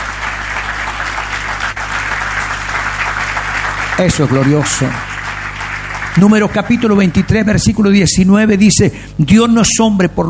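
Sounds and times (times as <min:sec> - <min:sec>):
audience applause: 0:00.0 - 0:07.8
speech: 0:04.0 - 0:05.1, 0:06.2 - 0:10.2.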